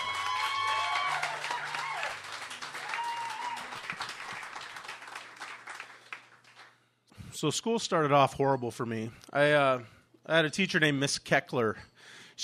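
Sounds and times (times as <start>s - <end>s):
audience applause: 0.0s - 6.8s
speech: 7.4s - 12.4s.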